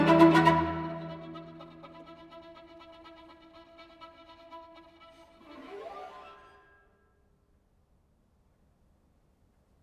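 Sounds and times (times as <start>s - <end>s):
string quartet: 0.0s - 6.4s.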